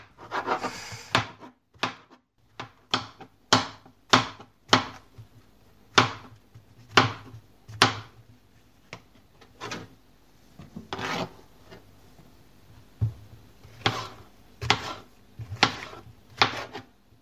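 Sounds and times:
knife chopping field mushrooms on a board: 0:00.2 - 0:05.3, 0:05.9 - 0:08.2, 0:13.7 - 0:16.9.

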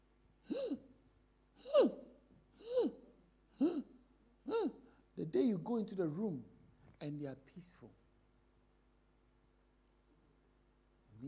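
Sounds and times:
voice imitating laboured gasping breathing of a person dying of cancer: 0:00.4 - 0:00.9, 0:01.6 - 0:05.1
speech: 0:05.3 - 0:08.0.

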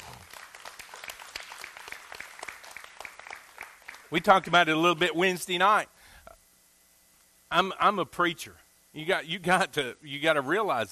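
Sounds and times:
audience applause: 0:00.0 - 0:04.1
speech: 0:04.1 - 0:05.9, 0:07.5 - 0:10.9.

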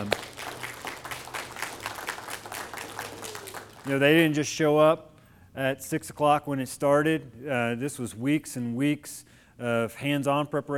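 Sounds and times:
audience applause: 0:00.0 - 0:04.0
speech: 0:03.9 - 0:10.7.

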